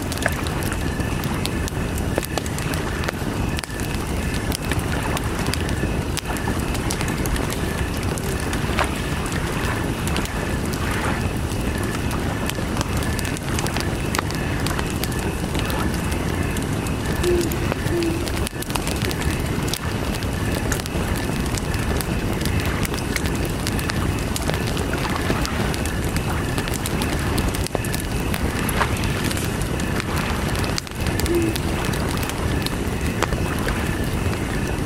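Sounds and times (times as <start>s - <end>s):
campfire by the lake: 0.0s - 34.8s
crickets chirping: 0.0s - 34.8s
lake water: 0.0s - 34.8s
owls hooting: 17.1s - 18.6s, 31.1s - 31.7s.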